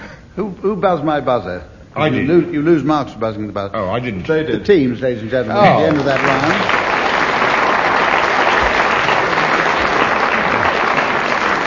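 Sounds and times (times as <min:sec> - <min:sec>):
speech: 0:00.4 - 0:06.8
audience applause: 0:05.6 - 0:11.6.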